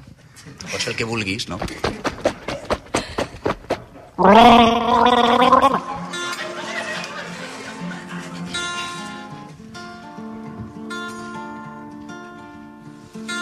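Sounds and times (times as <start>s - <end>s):
speech: 0.4s - 2.3s, 4.2s - 5.8s
gulping water: 4.2s - 6.0s
laughter: 4.4s - 9.5s.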